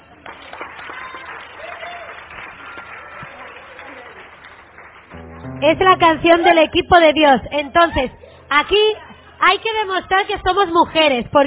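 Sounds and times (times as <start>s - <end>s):
audience applause: 0.0s - 5.6s
murmur of voices: 5.2s - 11.4s
speech: 5.6s - 11.4s.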